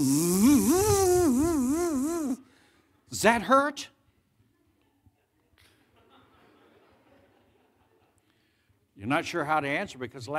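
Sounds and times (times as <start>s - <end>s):
voice imitating a dental drill bogging down: 0.0s - 2.4s
speech: 3.1s - 4.0s, 9.0s - 10.3s.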